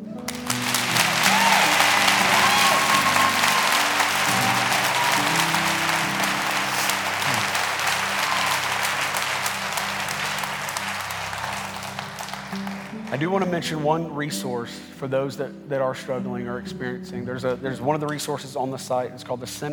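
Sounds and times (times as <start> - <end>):
audience applause: 0.0 - 13.6
speech: 13.2 - 19.7.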